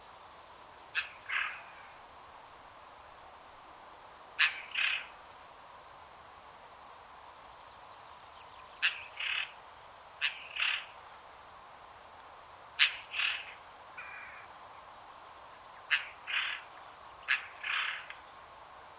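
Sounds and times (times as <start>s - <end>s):
Garrulus glandarius: 1.0s - 1.9s, 4.4s - 5.1s, 8.8s - 9.6s, 10.2s - 11.0s, 12.8s - 14.4s, 15.8s - 18.2s.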